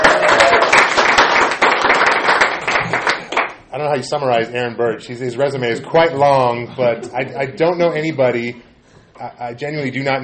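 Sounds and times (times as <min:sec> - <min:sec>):
audience clapping: 0:00.0 - 0:03.7
speech: 0:03.9 - 0:10.2.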